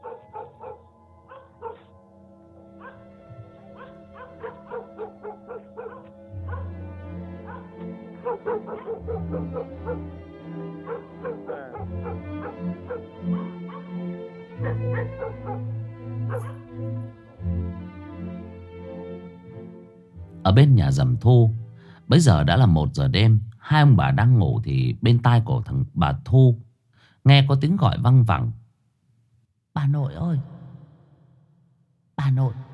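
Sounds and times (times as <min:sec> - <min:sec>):
dogs barking and whining at night: 0:00.0 - 0:02.0, 0:02.6 - 0:17.2
speech: 0:20.5 - 0:26.6, 0:27.2 - 0:28.6, 0:29.8 - 0:30.5, 0:32.3 - 0:32.6.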